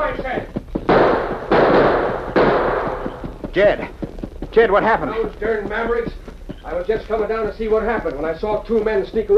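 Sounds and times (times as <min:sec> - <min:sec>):
speech: 0:00.2 - 0:00.5, 0:03.6 - 0:09.3
gunshot: 0:00.9 - 0:03.2.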